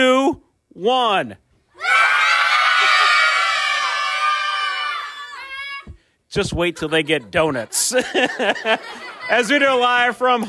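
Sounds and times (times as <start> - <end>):
speech: 0.0 - 2.0, 6.3 - 10.4
large crowd of students screaming, whooping and cheering at a school celebration: 1.8 - 5.9
laughter: 2.6 - 3.8, 6.4 - 10.2.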